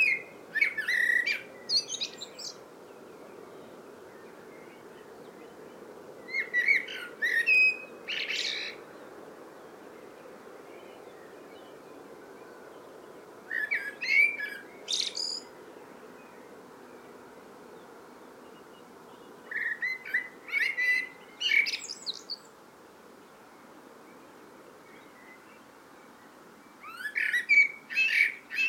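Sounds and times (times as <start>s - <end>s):
common blackbird singing: 0.0s - 2.6s, 6.3s - 8.8s, 13.5s - 15.5s, 19.1s - 22.5s, 26.7s - 28.6s.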